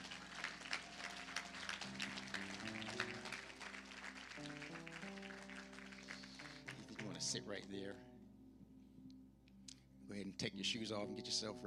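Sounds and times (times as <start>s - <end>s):
audience applauding: 0.0s - 7.6s
speech: 7.3s - 8.1s, 10.1s - 11.6s.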